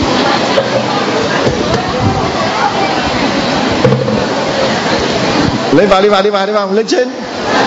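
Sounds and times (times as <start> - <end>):
rain falling: 0.0 - 7.6
speech: 5.8 - 7.6.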